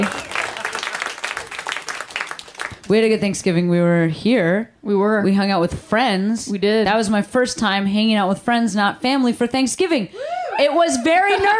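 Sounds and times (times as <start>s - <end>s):
audience applauding: 0.0s - 2.9s
speech: 2.9s - 11.5s.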